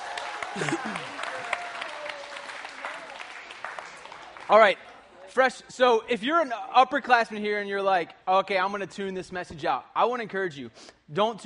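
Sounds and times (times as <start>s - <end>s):
audience clapping: 0.0s - 5.1s
person whooping: 0.2s - 3.0s
speech: 0.6s - 1.2s, 4.5s - 11.4s.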